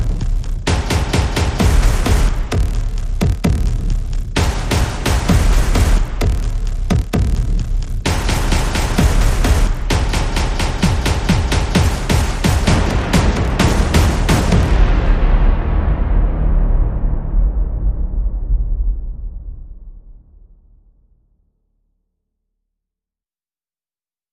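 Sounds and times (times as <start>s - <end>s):
percussion: 0.0s - 19.2s.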